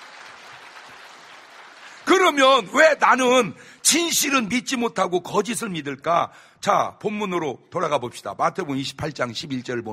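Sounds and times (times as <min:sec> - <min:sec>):
audience clapping: 0:00.0 - 0:03.1
speech: 0:02.2 - 0:09.9.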